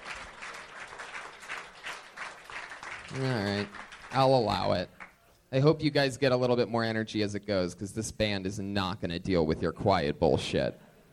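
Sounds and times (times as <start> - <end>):
live comedy show audience at Kill Tony cheering and applauding: 0.0 - 4.2
speech: 3.1 - 10.8.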